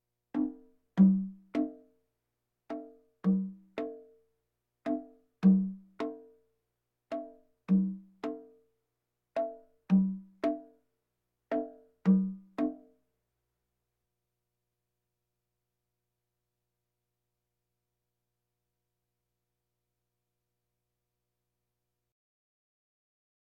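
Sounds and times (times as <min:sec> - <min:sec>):
bongos: 0:00.4 - 0:01.9, 0:02.7 - 0:04.2, 0:04.9 - 0:06.4, 0:07.1 - 0:08.6, 0:09.4 - 0:10.8, 0:11.5 - 0:12.9.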